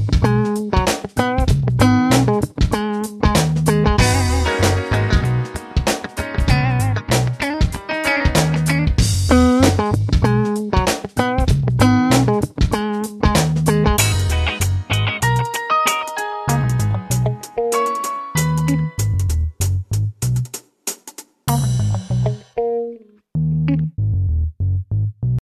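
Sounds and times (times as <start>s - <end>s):
funky music: 0.0s - 25.4s.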